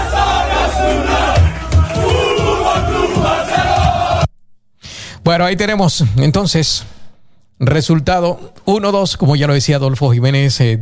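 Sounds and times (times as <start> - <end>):
group of men shouting and chanting in a locker room celebration: 0.0 - 4.3
speech: 5.3 - 7.0, 7.6 - 10.8.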